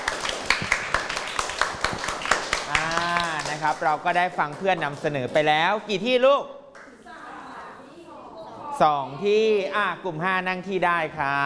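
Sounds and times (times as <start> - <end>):
group of people clapping: 0.0 - 5.8
speech: 3.6 - 6.6, 8.8 - 11.4.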